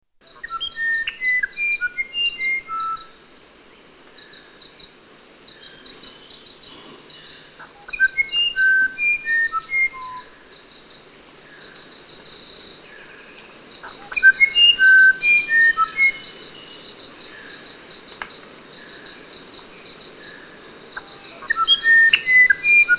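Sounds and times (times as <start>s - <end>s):
musician wren whistling song: 0.2s - 3.1s, 7.8s - 10.4s, 13.9s - 16.8s, 21.0s - 22.9s
insect drone: 0.2s - 22.9s.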